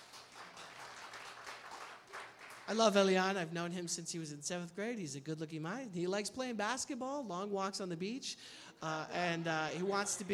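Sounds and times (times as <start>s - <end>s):
audience applause: 0.0s - 2.8s
speech: 2.7s - 10.3s.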